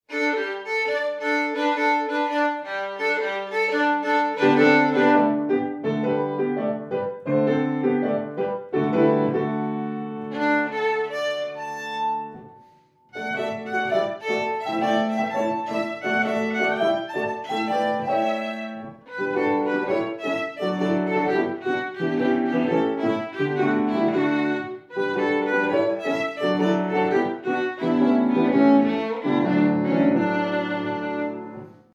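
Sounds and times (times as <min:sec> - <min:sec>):
street performers' violin playing: 0:00.0 - 0:07.2, 0:08.4 - 0:31.9.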